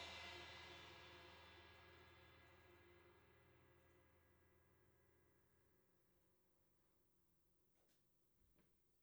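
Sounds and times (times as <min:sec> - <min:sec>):
drums recorded with PZM omni microphone: 0:00.0 - 0:04.2.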